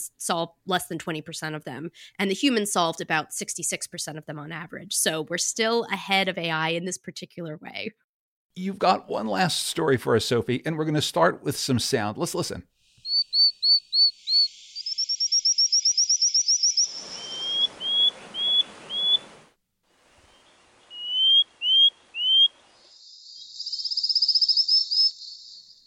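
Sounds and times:
speech: 0.0 - 8.0, 8.6 - 12.8
frog calls: 13.0 - 19.2, 20.9 - 25.8.

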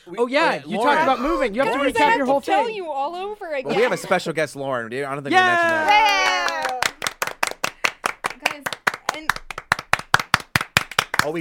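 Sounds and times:
speech: 0.0 - 6.5
hands clapping: 5.4 - 11.3.

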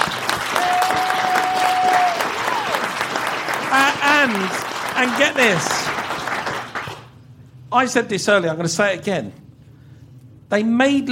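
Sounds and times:
applause: 0.0 - 7.2
speech: 4.2 - 5.8, 7.7 - 9.4, 10.5 - 11.1.

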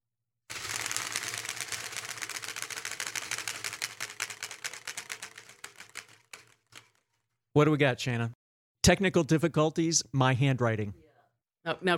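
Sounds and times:
card clicking in the spokes of a homemade bicycle-wheel spinning wheel: 0.5 - 7.2
speech: 7.6 - 11.0, 11.6 - 11.9.

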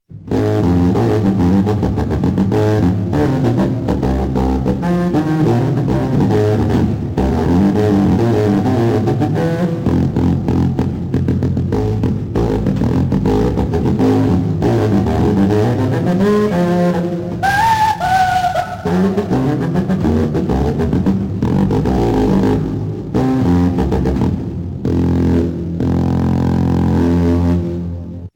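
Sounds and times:
contrabass saxophone: 0.1 - 28.3.

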